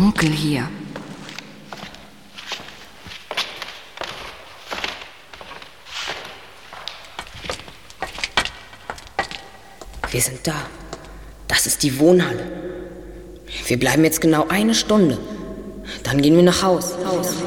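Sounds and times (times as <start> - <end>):
speech: 0.1 - 0.8, 10.1 - 10.8, 11.6 - 12.8, 13.7 - 15.3, 16.0 - 17.4
firm heel footsteps walking into a dark building: 0.2 - 11.4.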